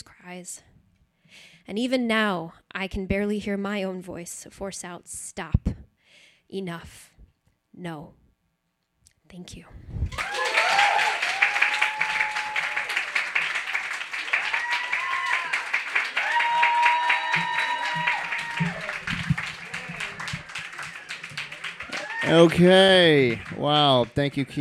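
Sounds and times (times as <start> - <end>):
speech: 0.2 - 0.7, 1.3 - 5.8, 6.5 - 7.1, 7.8 - 8.2, 9.3 - 10.4, 22.3 - 24.6
people whooping and cheering: 10.1 - 24.1
audience applause after poem reading: 10.1 - 24.6.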